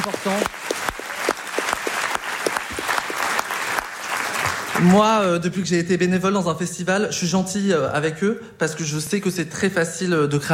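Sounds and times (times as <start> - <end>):
speech: 0.0 - 0.7, 4.8 - 10.5
festival audience clapping: 0.0 - 5.2.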